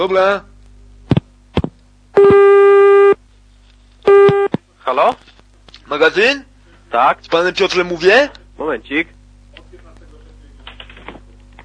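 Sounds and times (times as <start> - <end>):
speech: 0.0 - 0.5, 4.9 - 5.3, 5.9 - 9.2
telephone tone while call is transferred: 2.2 - 3.2, 4.1 - 4.5.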